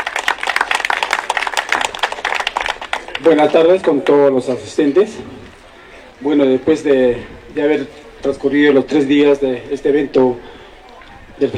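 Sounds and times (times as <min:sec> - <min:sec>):
crowd applauding: 0:00.0 - 0:04.7
speech: 0:03.2 - 0:05.4, 0:06.2 - 0:10.5, 0:11.4 - 0:11.5.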